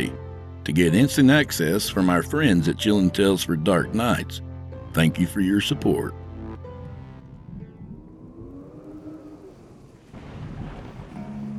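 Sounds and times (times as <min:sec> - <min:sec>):
speech: 0:00.0 - 0:06.2
rain: 0:07.9 - 0:11.5
thunder: 0:07.9 - 0:11.5.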